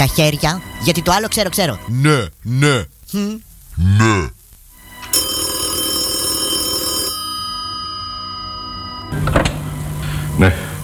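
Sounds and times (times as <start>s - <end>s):
speech: 0.0s - 4.4s, 10.4s - 10.6s
telephone bell ringing: 5.1s - 9.3s.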